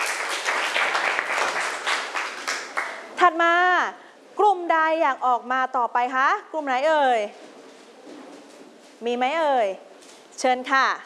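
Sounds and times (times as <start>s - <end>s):
students clapping: 0.0s - 3.1s
speech: 3.2s - 7.4s, 9.0s - 11.0s.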